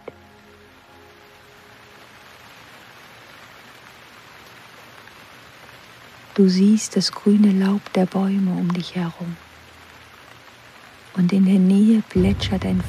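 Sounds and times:
rain falling: 0:00.0 - 0:12.8
speech: 0:06.4 - 0:09.5, 0:11.2 - 0:12.8.

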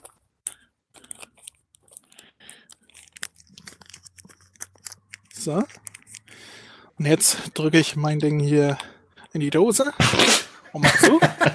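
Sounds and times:
paper till receipt crinkling as it is folded and wrapped around a roll: 0:00.0 - 0:06.6
speech: 0:05.4 - 0:05.9, 0:07.0 - 0:11.5
laughter: 0:10.8 - 0:11.5.

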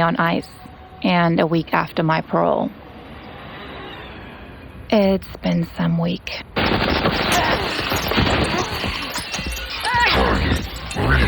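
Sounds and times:
speech: 0:00.0 - 0:02.8, 0:04.9 - 0:08.6
gunfire in a futuristic action scene: 0:06.6 - 0:09.8
crashing impacts: 0:06.6 - 0:11.2.

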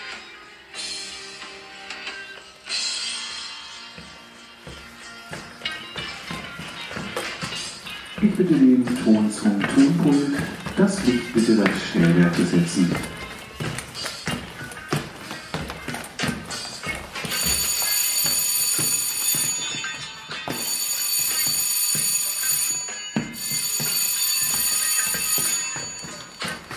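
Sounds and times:
theatre third performance signal chime: 0:05.4 - 0:15.1, 0:16.2 - 0:26.7
speech: 0:08.2 - 0:13.2.

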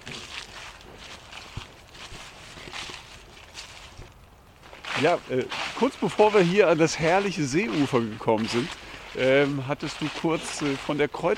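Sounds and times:
footsteps walking on a farm: 0:00.0 - 0:11.3
steady hiss of noise: 0:00.4 - 0:11.3
speech: 0:05.0 - 0:11.3.

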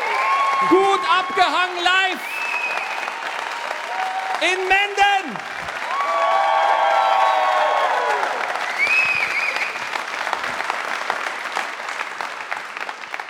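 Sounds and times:
whistles and cheers: 0:00.0 - 0:04.5, 0:05.8 - 0:10.2
crowd applauding: 0:00.0 - 0:13.2
speech: 0:00.6 - 0:02.5, 0:04.4 - 0:05.5.

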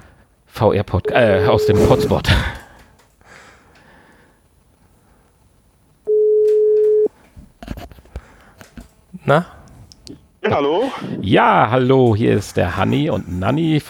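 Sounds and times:
speech: 0:00.6 - 0:02.6, 0:09.3 - 0:09.6, 0:10.5 - 0:13.8
ringback tone on an outgoing phone call: 0:01.1 - 0:02.2, 0:06.1 - 0:07.1.

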